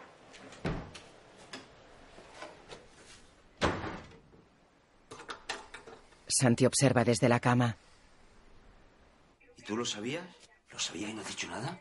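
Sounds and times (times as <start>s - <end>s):
door opening and shutting: 0.5s - 1.0s, 3.6s - 4.3s
speech: 6.4s - 7.8s, 9.8s - 11.8s.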